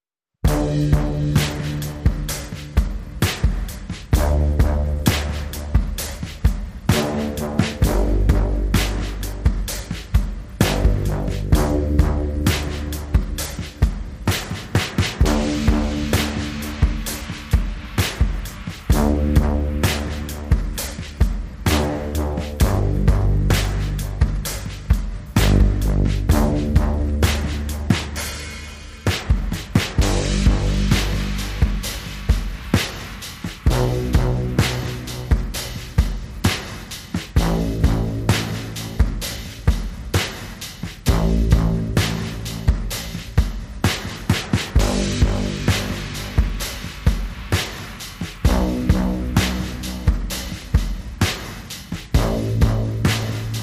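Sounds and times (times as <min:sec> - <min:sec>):
bass: 0:00.4 - 0:53.6
drums: 0:00.4 - 0:53.6.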